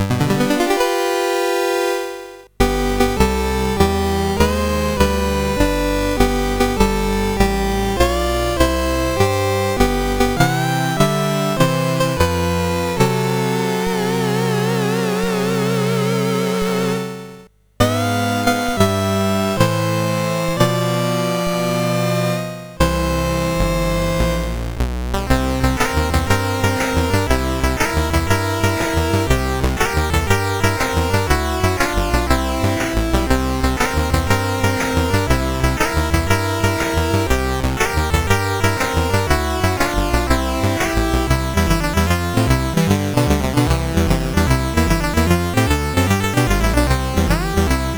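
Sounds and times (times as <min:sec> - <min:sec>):
chiptune melody on CSG8580R5 sound chip: 0:00.0 - 0:47.9.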